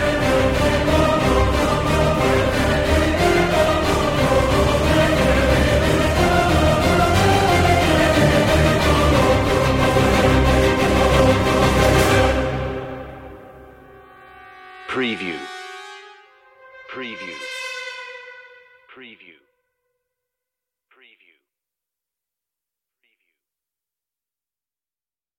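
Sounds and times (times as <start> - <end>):
choir singing without percussion: 0.0 - 19.2.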